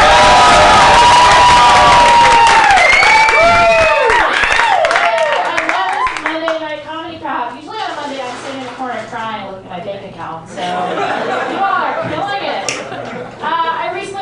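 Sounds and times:
comedy club audience applauding a comic: 0.0 - 6.6
laughter: 10.5 - 13.8.

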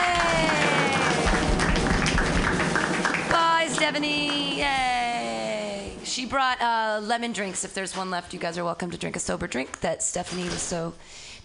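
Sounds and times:
audience clapping wildly: 0.0 - 5.1
speech: 3.8 - 5.1, 6.1 - 11.4.

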